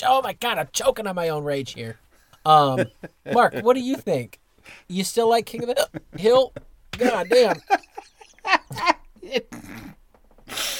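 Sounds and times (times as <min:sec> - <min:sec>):
speech: 0:00.0 - 0:10.7
laughter: 0:05.6 - 0:09.4
hiccups: 0:09.5 - 0:10.0
rough breathy exhaling: 0:10.5 - 0:10.7.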